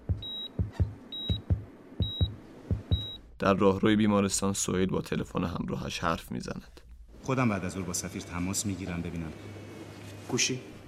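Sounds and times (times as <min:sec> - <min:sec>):
hospital monitoring machine beeping: 0:00.0 - 0:03.3
soft low thumps: 0:00.0 - 0:03.4
speech: 0:03.4 - 0:09.7, 0:10.3 - 0:10.7.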